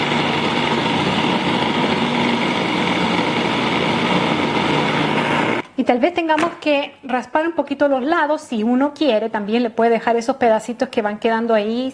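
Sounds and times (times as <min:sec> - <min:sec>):
food processor blending strawberries: 0:00.0 - 0:05.6
speech: 0:05.9 - 0:11.9.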